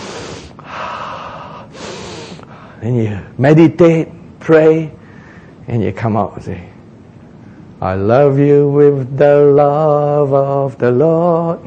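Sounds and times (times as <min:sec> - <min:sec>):
deep breath in: 0:00.0 - 0:02.8, 0:05.0 - 0:05.6
speech: 0:02.8 - 0:05.0, 0:05.7 - 0:06.7, 0:07.8 - 0:11.6.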